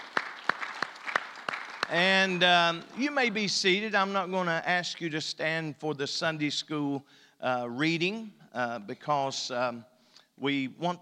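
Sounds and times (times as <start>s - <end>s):
audience hand clapping: 0.0s - 3.3s
speech: 1.9s - 11.0s.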